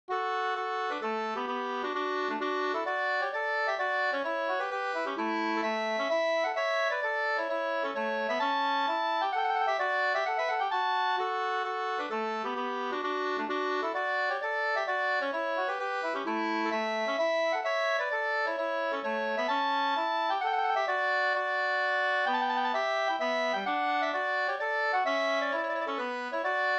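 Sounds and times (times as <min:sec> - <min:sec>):
polska dance tune: 0:00.1 - 0:26.7.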